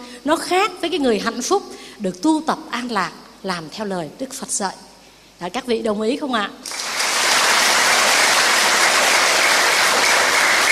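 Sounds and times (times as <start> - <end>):
speech: 0.2 - 6.8
audience applause during a Buddhist nun's dharma talk: 6.7 - 10.7.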